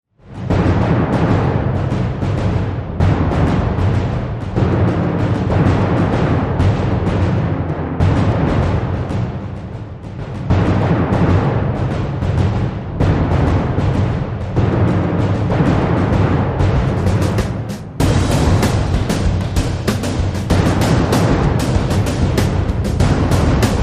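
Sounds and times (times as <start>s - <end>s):
driving war drums: 0.2s - 23.8s.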